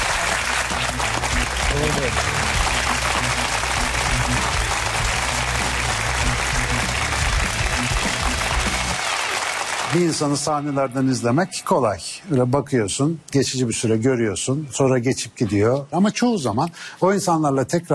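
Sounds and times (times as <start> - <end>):
audience applause: 0.0 - 10.9
speech: 9.9 - 17.9.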